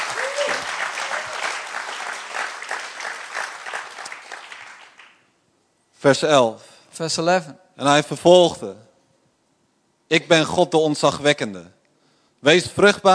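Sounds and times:
audience applauding: 0.0 - 5.3
speech: 6.0 - 8.9, 10.1 - 11.8, 12.4 - 13.1.

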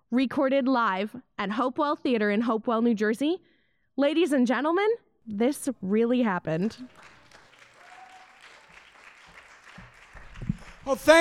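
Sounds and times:
speech: 0.1 - 7.2, 10.9 - 11.1
audience applause at Hopewell Theater: 6.7 - 11.1.

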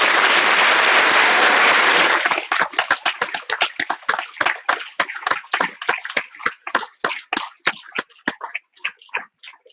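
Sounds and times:
audience applause: 0.0 - 7.4.

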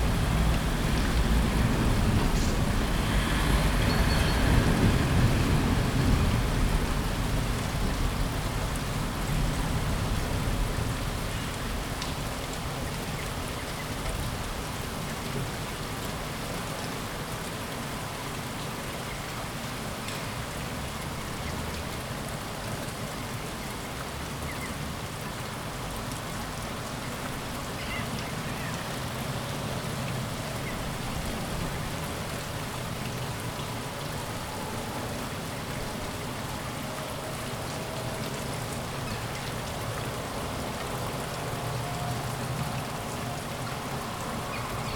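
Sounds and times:
passing traffic rumble: 0.0 - 16.7, 25.7 - 44.9
light morning rain on city streets in Kuldiga, Latvia: 0.0 - 44.9.

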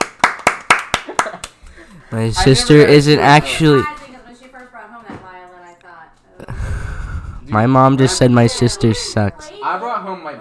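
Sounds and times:
round of applause: 0.0 - 1.6
speech: 2.1 - 4.0, 7.6 - 10.3.

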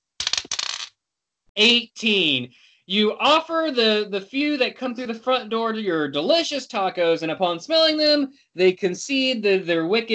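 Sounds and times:
dice rolling on a tabletop: 0.2 - 0.9
speech: 1.6 - 10.1.

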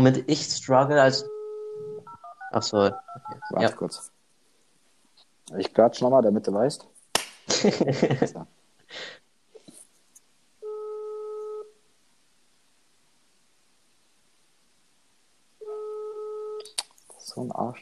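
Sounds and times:
speech: 0.0 - 1.3, 2.5 - 4.1, 5.5 - 6.9, 7.5 - 9.2, 17.4 - 17.8
faint hiss: 0.0 - 17.8
phone ringback tone: 1.2 - 3.6, 10.6 - 11.7, 15.6 - 16.6
laughter: 7.5 - 8.4.

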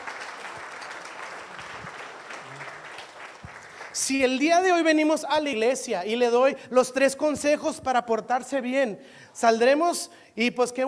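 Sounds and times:
audience applause: 0.0 - 4.4
speech: 4.0 - 10.8.

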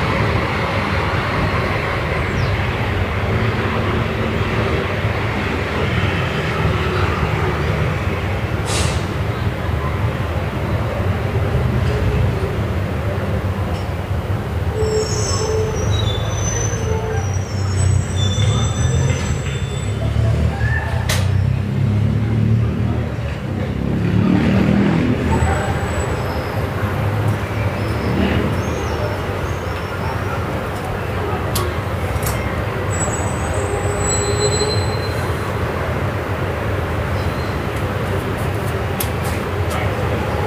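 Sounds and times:
evening traffic rumble on Via Moscova in Milan: 0.0 - 40.4
short high metallic squeals: 14.7 - 20.0, 32.9 - 35.4.

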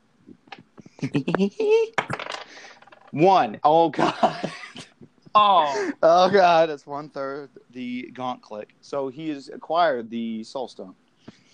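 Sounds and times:
speech: 1.0 - 4.6, 5.3 - 11.0
dice rolled in a tabletop game: 2.0 - 3.2.

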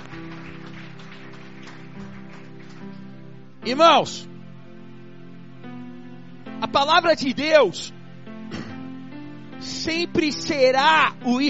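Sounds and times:
audience applauding: 0.0 - 3.3
speech: 3.6 - 4.3, 6.7 - 8.0, 9.6 - 11.4.

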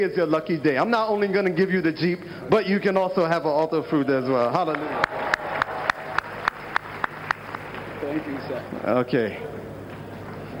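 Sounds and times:
speech: 0.0 - 5.3, 8.1 - 9.5
audience applause: 4.5 - 8.8.

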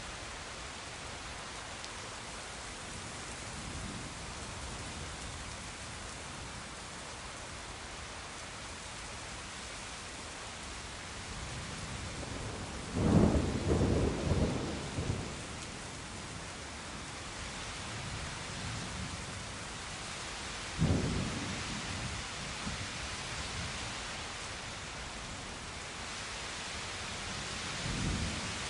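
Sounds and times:
steady dense rain hissing in a thunderstorm: 0.0 - 28.6
low thunder rumbling: 12.2 - 15.4.

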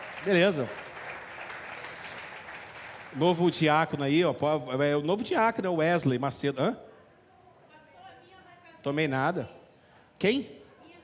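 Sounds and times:
audience applauding a couple: 0.0 - 4.2
speech: 0.2 - 0.8, 3.1 - 6.9, 8.8 - 9.6, 10.2 - 10.6.

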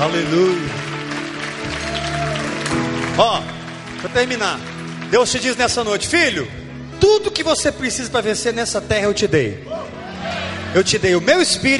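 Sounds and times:
speech: 0.0 - 0.9, 3.2 - 9.9, 10.8 - 11.7
audience applause: 0.0 - 6.4.

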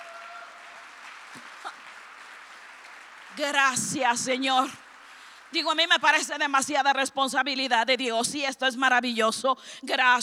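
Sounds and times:
crowd clapping: 0.0 - 6.7
speech: 3.4 - 4.8, 5.5 - 10.2.

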